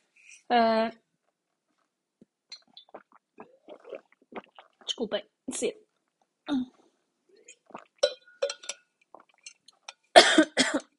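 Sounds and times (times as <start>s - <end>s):
speech: 0.5s - 1.0s, 5.0s - 5.8s, 6.5s - 6.8s
choking cough: 10.2s - 10.9s.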